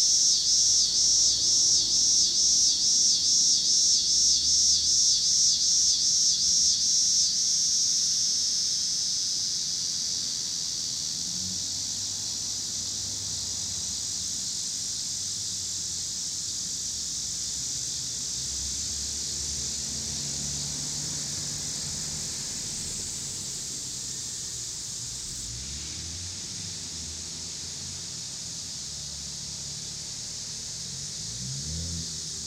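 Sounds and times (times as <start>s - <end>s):
cicadas in Pittsburgh PA: 0.0s - 32.4s
cars in Pittsburgh PA: 10.5s - 32.4s.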